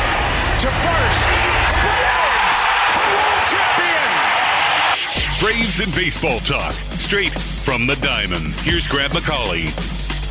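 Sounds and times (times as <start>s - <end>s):
huge stadium crowd cheering a championship win: 0.0s - 5.7s
speech: 5.5s - 10.0s.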